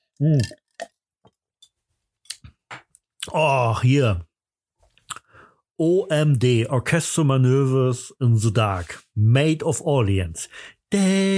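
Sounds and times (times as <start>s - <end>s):
speech: 0.2s - 0.9s, 3.3s - 4.3s, 5.8s - 11.3s
person sipping a drink: 0.2s - 1.0s.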